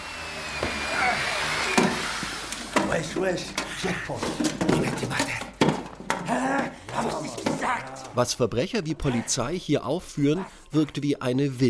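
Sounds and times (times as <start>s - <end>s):
drilling into a bank vault: 0.0s - 3.8s
speech: 3.0s - 5.5s, 6.3s - 11.6s.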